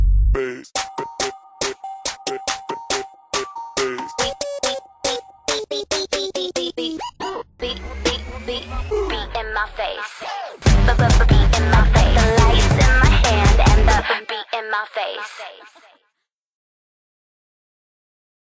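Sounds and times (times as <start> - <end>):
music beat: 0.0 - 9.5, 10.6 - 14.0.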